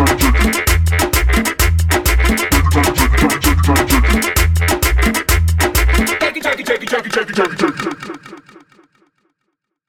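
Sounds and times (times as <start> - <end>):
sandungueo music: 0.0 - 7.0.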